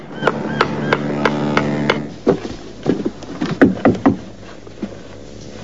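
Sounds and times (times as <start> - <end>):
man hammering at a roof tile: 0.2 - 4.3.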